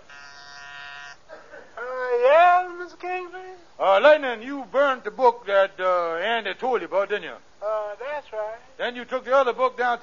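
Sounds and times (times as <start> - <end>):
intercom buzzer: 0.0 - 1.2
speech: 3.9 - 10.0.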